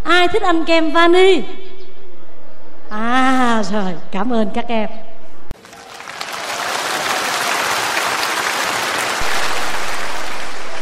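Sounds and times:
speech: 0.2s - 1.6s, 2.9s - 5.1s
audience of children applauding: 5.6s - 10.8s.

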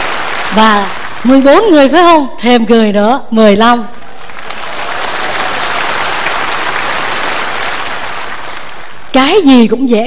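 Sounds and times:
round of applause from a group: 0.0s - 1.8s, 3.9s - 9.2s
speech: 0.5s - 4.0s, 9.2s - 10.0s.

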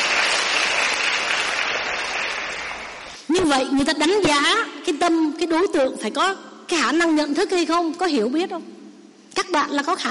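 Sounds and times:
audience applause: 0.0s - 3.2s
speech: 3.5s - 8.8s, 9.4s - 10.0s.

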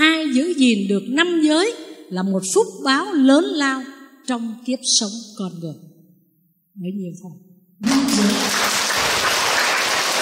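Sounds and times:
speech: 0.4s - 5.9s, 6.8s - 8.5s
audience applauding at a Buddhist sermon during the Vesak season: 7.8s - 10.1s.

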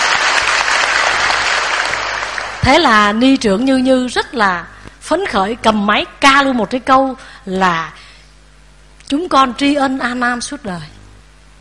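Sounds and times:
audience applause at a Buddhist gathering: 0.0s - 2.7s
speech: 2.6s - 8.0s, 9.1s - 11.0s.

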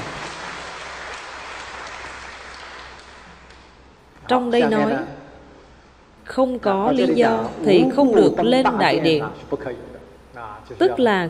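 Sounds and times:
audience applauding in a lecture: 0.0s - 3.8s
speech: 4.3s - 5.2s, 6.3s - 11.2s.

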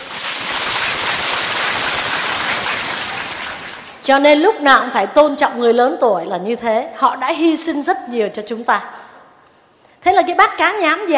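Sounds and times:
audience applause: 0.0s - 4.0s
speech: 4.0s - 9.0s, 10.0s - 11.1s.

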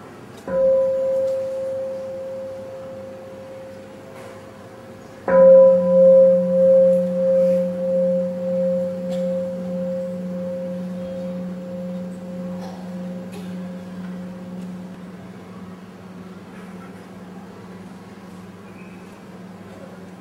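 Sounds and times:
meditation bell ringing: 0.5s - 4.2s, 5.3s - 15.3s.

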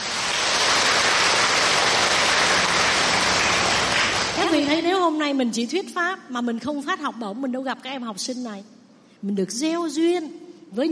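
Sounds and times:
crowd applause: 0.0s - 4.7s
speech: 5.1s - 10.8s.

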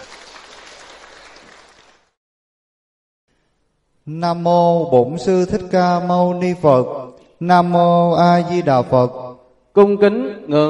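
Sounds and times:
audience applause: 0.0s - 2.2s
speech: 4.1s - 10.6s.

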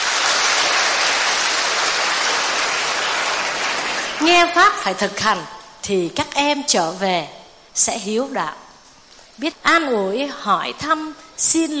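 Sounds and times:
large crowd clapping: 0.0s - 5.0s
speech: 4.2s - 8.6s, 9.4s - 11.7s.

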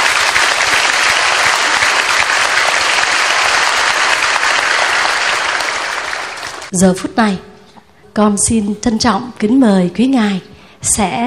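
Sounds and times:
audience applause: 0.0s - 6.7s
speech: 6.7s - 7.5s, 8.2s - 11.2s.

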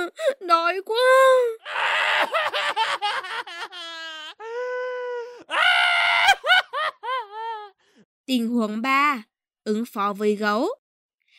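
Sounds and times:
speech: 0.0s - 1.7s, 8.3s - 10.8s
loud crying: 1.6s - 7.7s.

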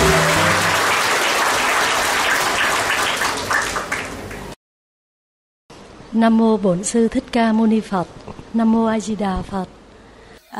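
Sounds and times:
audience applause: 0.0s - 4.6s
speech: 6.1s - 9.8s.

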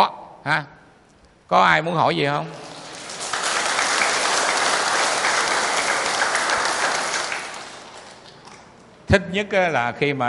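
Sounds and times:
speech: 0.0s - 0.8s, 1.5s - 2.7s, 9.1s - 10.2s
audience applause at a talk: 2.6s - 8.7s.

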